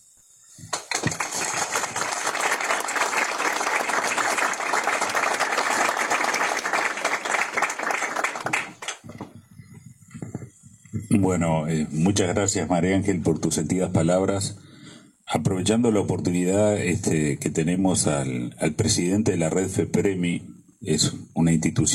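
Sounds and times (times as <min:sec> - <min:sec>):
audience applause: 0:00.7 - 0:09.1
speech: 0:11.2 - 0:14.6, 0:15.6 - 0:21.9.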